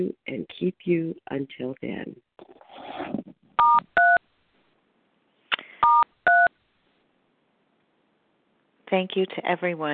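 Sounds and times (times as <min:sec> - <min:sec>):
speech: 0:00.0 - 0:03.9, 0:08.9 - 0:09.9
telephone keypad tones: 0:05.8 - 0:06.5.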